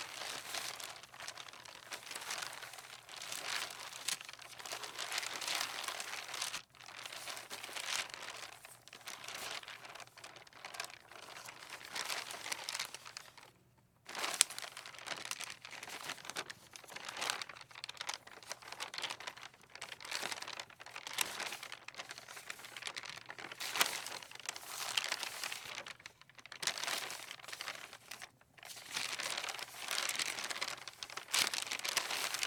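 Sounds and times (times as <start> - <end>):
papers rustling in the wind: 0.0 - 32.4.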